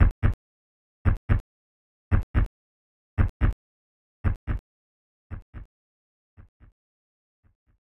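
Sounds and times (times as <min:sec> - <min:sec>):
heartbeat: 0:00.0 - 0:00.4, 0:01.1 - 0:01.4, 0:02.1 - 0:02.5, 0:03.2 - 0:03.6, 0:04.2 - 0:04.6, 0:05.3 - 0:05.7.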